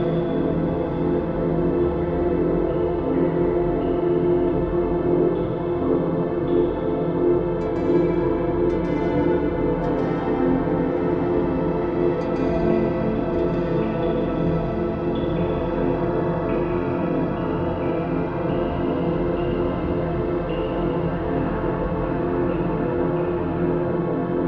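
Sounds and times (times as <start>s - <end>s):
eerie guitar soundscape: 0.0s - 24.4s.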